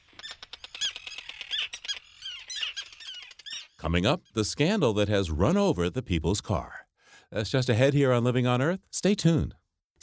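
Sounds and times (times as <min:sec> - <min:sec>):
terns calling at a seabird colony on Faulkner Island: 0:00.1 - 0:04.4
speech: 0:03.8 - 0:10.0.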